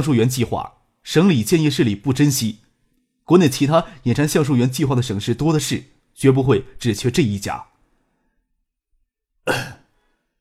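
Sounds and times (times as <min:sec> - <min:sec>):
speech: 0:00.0 - 0:02.6, 0:03.3 - 0:07.7, 0:09.5 - 0:09.8
light cough: 0:09.4 - 0:09.9.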